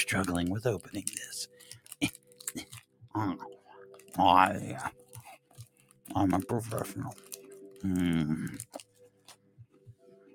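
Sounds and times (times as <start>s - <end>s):
biting and chewing a small Twix candy bar: 0.0s - 2.9s, 3.9s - 9.4s
soft voice sounds: 0.0s - 3.6s, 4.2s - 5.0s, 6.1s - 7.2s, 7.8s - 8.8s
speech: 0.0s - 3.6s, 4.2s - 5.0s, 6.1s - 8.8s.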